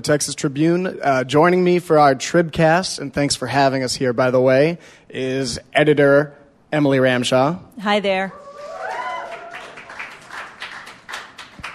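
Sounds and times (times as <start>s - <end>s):
speech: 0.0s - 8.4s
audience applause: 8.5s - 11.7s.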